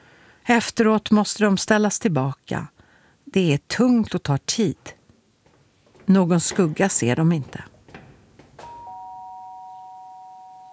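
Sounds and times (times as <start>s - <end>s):
speech: 0.5s - 5.0s, 6.1s - 7.7s
doorbell ringing: 8.6s - 10.7s.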